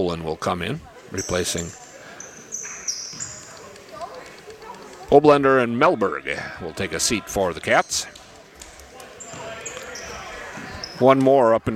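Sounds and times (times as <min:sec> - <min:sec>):
speech: 0:00.0 - 0:01.8, 0:05.1 - 0:08.2, 0:11.0 - 0:11.7
basketball dribbled on a court during a game: 0:02.9 - 0:04.2, 0:09.2 - 0:11.0.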